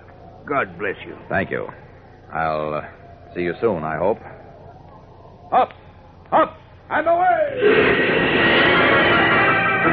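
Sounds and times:
speech: 0:00.4 - 0:04.4, 0:05.5 - 0:05.8
great rush of wind: 0:07.6 - 0:09.8.

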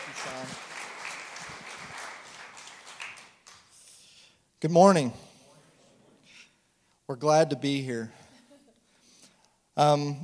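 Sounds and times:
applause at a church gathering welcoming guests on stage: 0:00.0 - 0:03.8
speech: 0:04.6 - 0:05.2, 0:07.1 - 0:08.2, 0:09.8 - 0:10.2.

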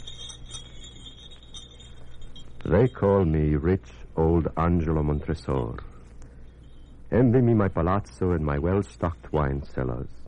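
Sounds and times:
small jester's bells jingling: 0:00.0 - 0:10.2
speech: 0:02.6 - 0:05.9, 0:07.1 - 0:10.2.

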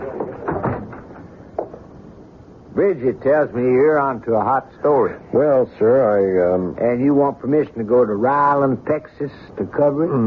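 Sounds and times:
door being shut in a newspaper newsroom: 0:00.0 - 0:01.4
speech: 0:02.8 - 0:10.2.

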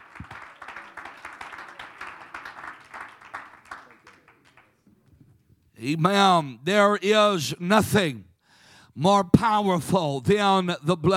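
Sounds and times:
audience clapping hands: 0:00.0 - 0:04.9
speech: 0:05.8 - 0:08.3, 0:09.0 - 0:11.1.

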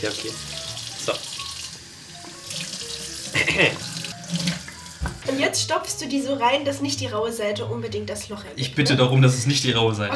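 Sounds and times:
speech: 0:00.0 - 0:01.4, 0:03.4 - 0:04.4, 0:05.3 - 0:10.1
warm tap water running into sink: 0:00.0 - 0:05.4.

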